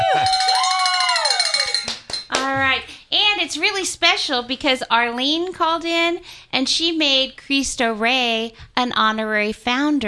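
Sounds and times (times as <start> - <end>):
group of voices cheering and shouting: 0.0 - 1.9
handheld bell ringing: 0.0 - 2.3
speech: 3.5 - 10.0.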